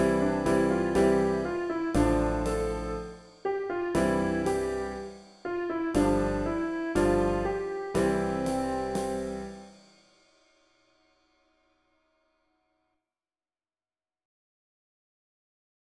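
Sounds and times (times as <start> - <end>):
Italian song: 0.0 - 9.7.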